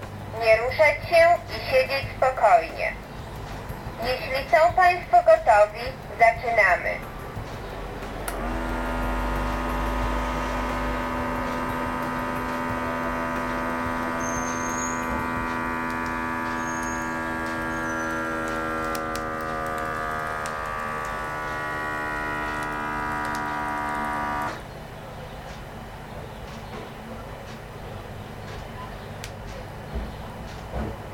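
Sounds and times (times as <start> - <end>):
speech: 0.7 - 3.0, 4.0 - 7.1
electronic blood pressure cuff motor humming while inflating: 8.1 - 24.8.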